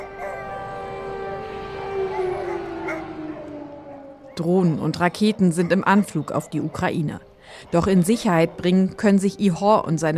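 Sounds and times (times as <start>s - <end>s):
air raid sirens wailing outside: 0.0s - 10.1s
speech: 4.4s - 10.1s.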